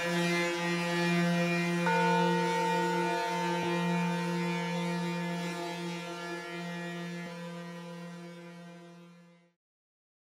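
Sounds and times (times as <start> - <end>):
sound waves: 0.6 - 8.6.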